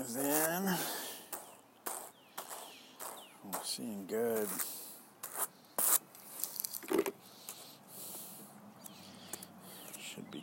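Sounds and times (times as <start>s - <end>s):
speech: 0.0s - 1.0s, 3.7s - 4.7s
medium-range Ashford hand carders carding fibre: 1.9s - 7.8s.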